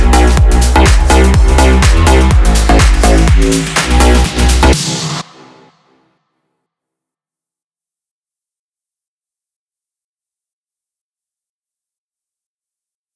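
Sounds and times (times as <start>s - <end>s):
future house music in E: 0.0s - 5.9s.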